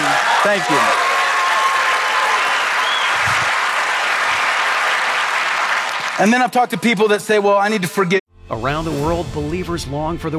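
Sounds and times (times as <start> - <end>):
crowd applauding: 0.0 - 7.2
speech: 0.4 - 1.0, 6.2 - 10.3.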